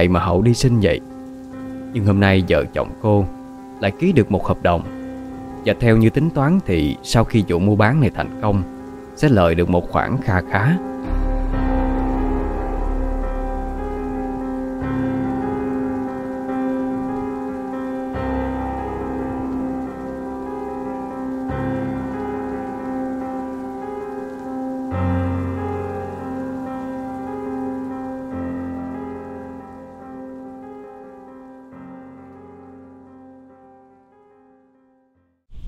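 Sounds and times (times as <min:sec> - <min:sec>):
speech: 0:00.0 - 0:01.1, 0:01.9 - 0:05.0, 0:05.6 - 0:10.9
heavy rain: 0:00.0 - 0:33.4
sustained droning musical tone with shifting chords: 0:10.9 - 0:28.0.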